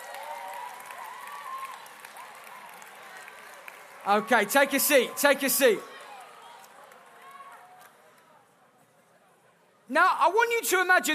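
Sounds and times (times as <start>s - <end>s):
audience applause: 0.0s - 7.7s
speech: 4.0s - 5.9s, 10.0s - 11.1s.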